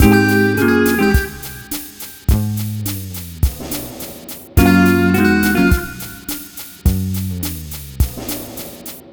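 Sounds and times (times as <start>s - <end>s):
multiple guitars playing bossa nova in G sharp: 0.0s - 3.0s, 4.6s - 7.3s.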